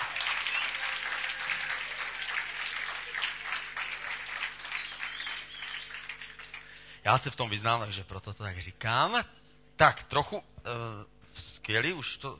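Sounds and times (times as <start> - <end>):
audience applause: 0.0 - 6.9
speech: 7.1 - 12.3.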